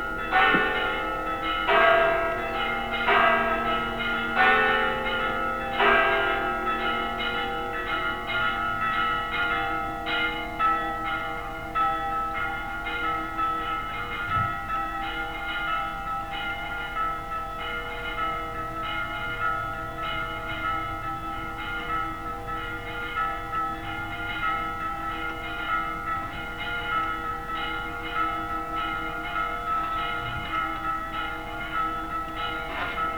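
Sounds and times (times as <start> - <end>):
bells tolling for the souls: 0.0 - 33.1.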